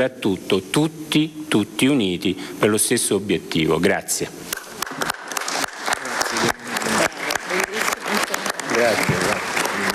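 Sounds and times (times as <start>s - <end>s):
speech: 0.0s - 4.6s
audience applause: 4.7s - 9.9s.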